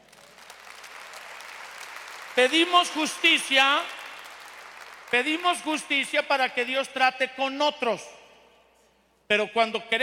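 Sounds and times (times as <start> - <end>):
audience applause: 0.0 - 5.4
speech: 2.4 - 4.0, 5.1 - 8.2, 9.3 - 10.0.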